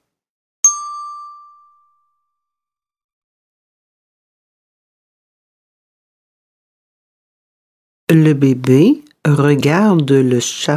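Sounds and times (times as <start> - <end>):
bell chime: 0.6 - 2.4
speech: 8.1 - 10.7.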